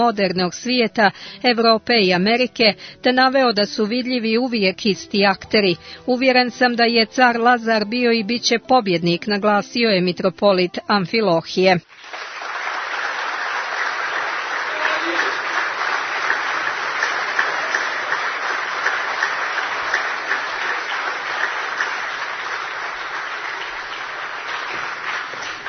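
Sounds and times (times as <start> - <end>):
speech: 0.0 - 12.3
audience applause at a gathering following speeches: 11.9 - 25.6.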